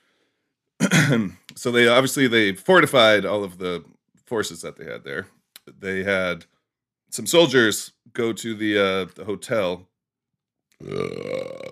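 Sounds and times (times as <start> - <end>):
long low gurgling burp after a sip of beer: 0.8 - 1.4, 10.8 - 11.7
speech: 0.9 - 6.5, 7.1 - 9.9, 10.8 - 11.7.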